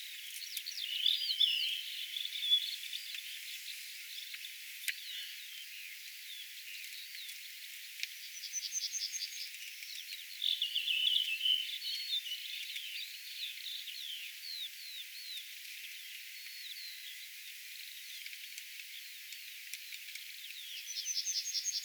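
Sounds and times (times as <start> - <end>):
Redwing singing high thin whistled notes: 0.6 - 3.6, 8.3 - 9.5, 10.3 - 15.4, 20.5 - 21.8.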